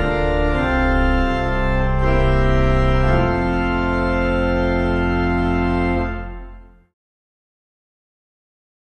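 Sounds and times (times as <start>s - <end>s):
organ playing hymns: 0.0s - 6.9s.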